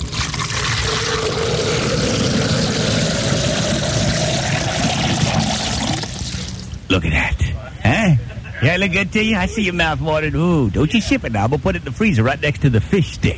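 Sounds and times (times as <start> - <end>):
drink pouring into a glass: 0.0 - 6.8
speech: 6.9 - 7.4, 8.6 - 13.3
laughter: 7.3 - 9.8.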